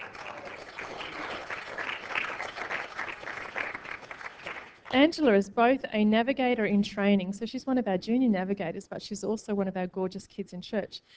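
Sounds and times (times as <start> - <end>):
audience applause: 0.0 - 4.9
speech: 4.9 - 11.1.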